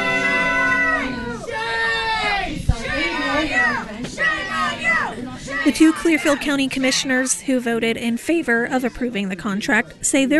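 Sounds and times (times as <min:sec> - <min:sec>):
crowd in a room shouting and jeering: 0:00.0 - 0:07.5
speech: 0:05.6 - 0:10.3.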